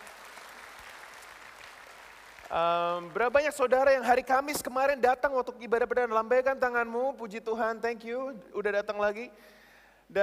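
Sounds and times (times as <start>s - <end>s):
applause: 0.0s - 3.8s
speech: 2.5s - 10.2s.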